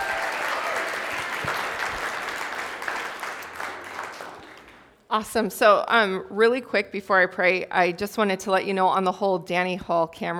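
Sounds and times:
audience applause at a church gathering welcoming a speaker: 0:00.0 - 0:04.9
speech: 0:05.1 - 0:10.3.

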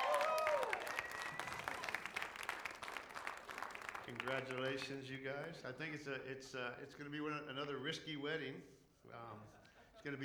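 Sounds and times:
church audience applauding a newly engaged couple: 0:00.0 - 0:05.6
speech: 0:04.1 - 0:10.2.

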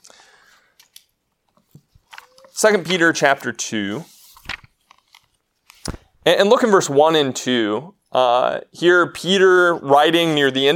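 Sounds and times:
thin Bible pages being turned: 0:00.8 - 0:06.1
speech: 0:02.6 - 0:04.1, 0:06.3 - 0:10.7.

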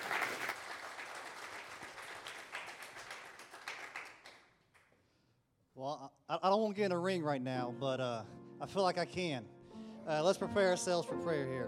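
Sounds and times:
crowd clapping: 0:00.0 - 0:05.0
speech: 0:05.8 - 0:11.6.

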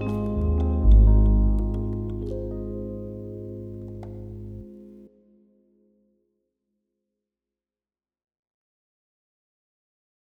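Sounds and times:
latin jazz video track: 0:00.0 - 0:04.8.

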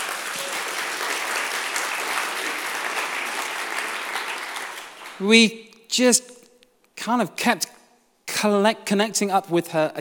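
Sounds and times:
audience clapping: 0:00.0 - 0:05.3
speech: 0:05.2 - 0:06.3, 0:07.0 - 0:07.8, 0:08.4 - 0:09.9.

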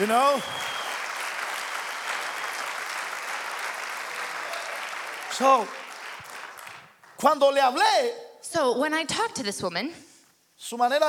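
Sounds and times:
speech: 0:00.0 - 0:00.8, 0:05.4 - 0:05.8, 0:07.2 - 0:11.0
audience applause: 0:00.0 - 0:07.2.

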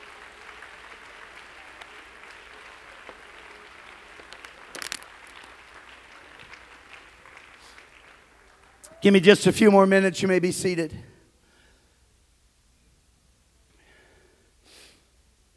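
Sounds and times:
crowd clapping in a large room: 0:00.0 - 0:09.6
speech: 0:09.0 - 0:11.1.

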